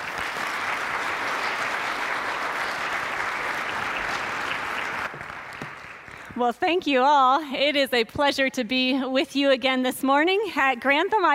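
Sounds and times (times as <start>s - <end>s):
church service audience applauding to welcome a bishop: 0.0s - 6.4s
speech: 6.4s - 11.3s.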